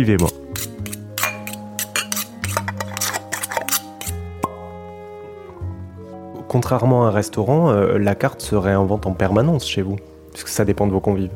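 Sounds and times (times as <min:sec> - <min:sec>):
speech: 0:00.0 - 0:00.7, 0:06.5 - 0:11.3
dishes, pots and cutlery clattering in a kitchen: 0:00.2 - 0:04.2.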